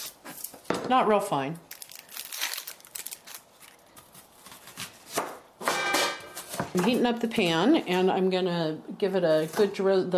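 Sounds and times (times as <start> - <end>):
speech: 0.9 - 1.7, 6.8 - 10.1
knife chopping an onion on a board: 4.0 - 7.0.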